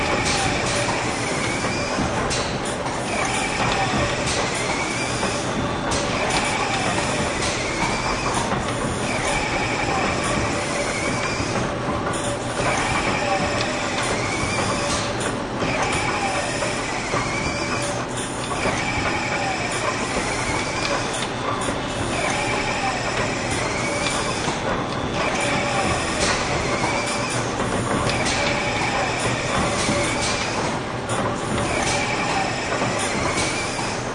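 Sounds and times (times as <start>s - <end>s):
factory robotics during parts assembly: 0.0s - 34.0s.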